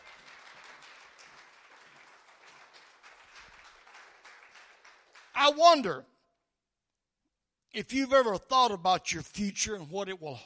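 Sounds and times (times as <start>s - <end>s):
audience clapping hands in praise: 0.0s - 6.0s
speech: 5.4s - 6.1s, 7.7s - 10.4s.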